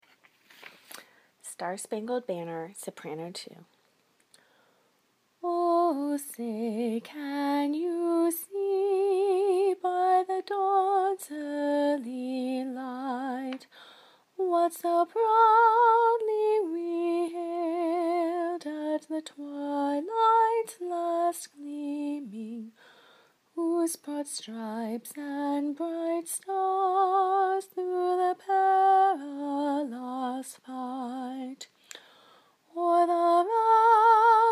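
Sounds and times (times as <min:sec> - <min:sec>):
soprano singing: 0:05.4 - 0:22.9, 0:23.5 - 0:31.7, 0:32.7 - 0:34.5.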